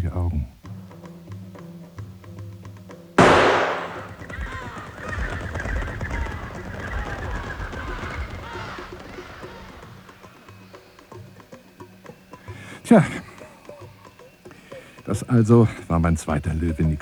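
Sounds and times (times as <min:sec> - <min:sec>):
rifle gunshot: 0:03.2 - 0:04.3
laughter: 0:04.0 - 0:10.8
speech: 0:12.9 - 0:13.2, 0:15.1 - 0:17.0.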